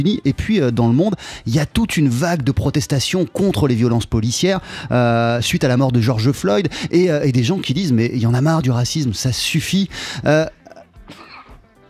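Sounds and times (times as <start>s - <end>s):
speech: 0.0s - 11.3s
person sneezing: 10.7s - 11.6s.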